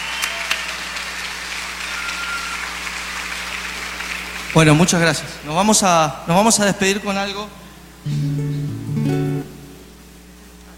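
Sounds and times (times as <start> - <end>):
applause for a doctor and his team: 0.0 - 5.6
speech: 4.5 - 8.4.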